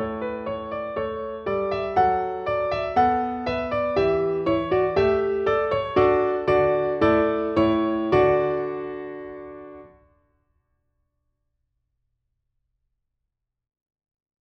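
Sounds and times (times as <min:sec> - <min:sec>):
musical accompaniment: 0:00.0 - 0:09.9.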